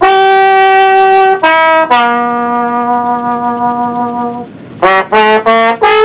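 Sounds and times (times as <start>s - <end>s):
trombone: 0.0s - 6.0s.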